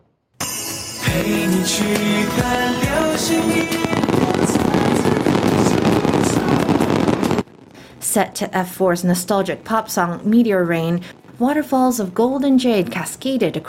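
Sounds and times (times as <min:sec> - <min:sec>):
drone-launched fireworks: 0:01.1 - 0:07.8, 0:09.5 - 0:13.6
speech: 0:01.2 - 0:05.7, 0:08.2 - 0:13.6.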